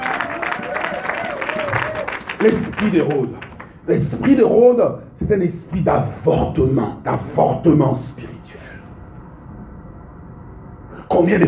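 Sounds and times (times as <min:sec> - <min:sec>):
audience applause: 0:00.0 - 0:03.8
speech: 0:02.4 - 0:08.4, 0:11.2 - 0:11.4.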